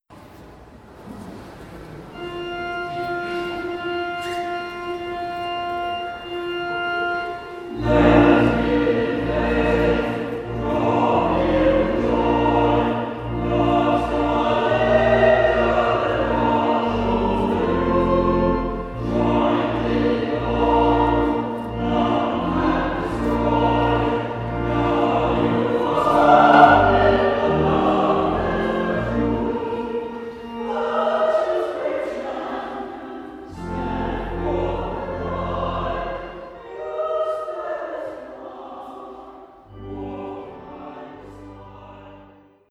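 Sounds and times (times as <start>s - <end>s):
choir singing a bridal march: 2.1s - 42.6s.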